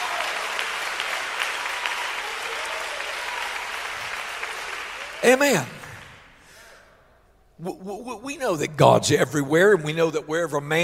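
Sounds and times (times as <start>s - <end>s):
audience clapping hands and shouting: 0.0s - 6.6s
speech: 5.2s - 5.8s, 7.6s - 10.8s.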